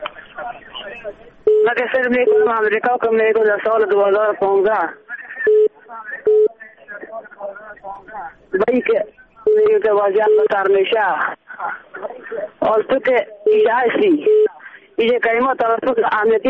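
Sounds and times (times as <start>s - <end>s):
telephone-quality speech: 0.0s - 16.4s
speech: 1.0s - 5.0s, 7.8s - 11.4s, 12.7s - 14.4s, 15.0s - 16.4s
phone line tones and short beeps: 1.4s - 2.5s, 5.4s - 6.5s, 9.4s - 10.6s, 13.5s - 14.5s.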